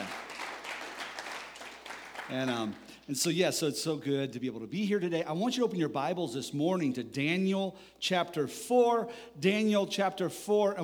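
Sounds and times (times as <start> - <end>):
crowd applause: 0.0 - 2.9
speech: 2.3 - 10.8.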